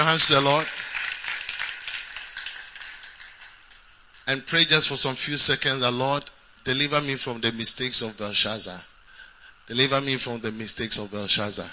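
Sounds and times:
speech: 0.0 - 0.8, 4.3 - 8.9, 9.7 - 11.7
audience clapping: 0.0 - 4.3.

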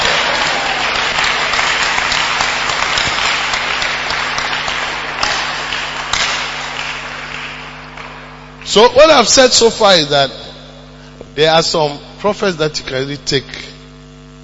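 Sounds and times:
audience applause: 0.0 - 9.2
speech: 8.7 - 10.4, 11.4 - 13.7.

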